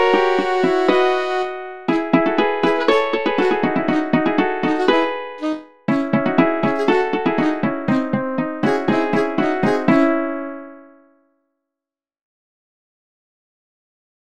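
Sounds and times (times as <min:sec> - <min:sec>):
baroque polka music: 0:00.0 - 0:10.8.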